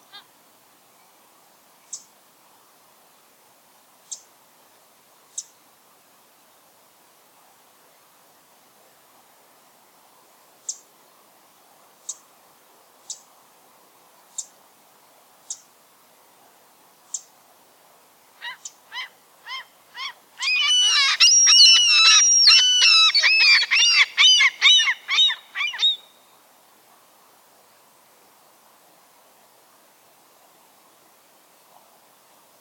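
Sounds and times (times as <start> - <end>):
loon calls: 18.4 - 26.0
birds: 18.4 - 26.2.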